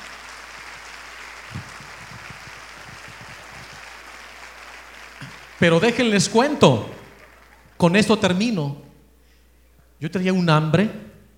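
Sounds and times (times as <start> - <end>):
audience applause: 0.0 - 8.4
speech: 5.6 - 7.0, 7.8 - 8.8, 10.0 - 11.0.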